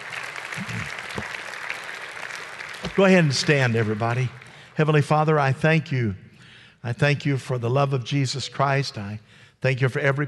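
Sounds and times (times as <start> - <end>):
audience clapping: 0.0 - 5.0
low murmurs: 0.6 - 1.3
speech: 3.0 - 6.2, 6.8 - 10.2.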